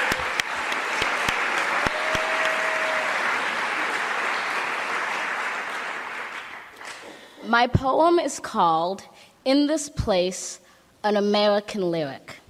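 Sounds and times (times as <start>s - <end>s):
audience applause: 0.0s - 7.0s
speech: 7.5s - 12.4s.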